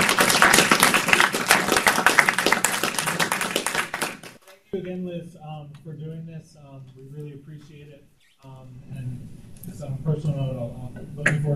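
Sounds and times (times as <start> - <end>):
audience round of applause: 0.0 - 4.5
speech: 4.8 - 11.5.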